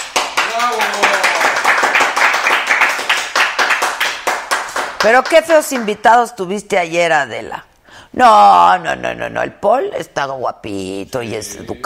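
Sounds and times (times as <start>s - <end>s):
applause: 0.0s - 6.0s
speech: 0.6s - 1.3s, 5.0s - 11.8s.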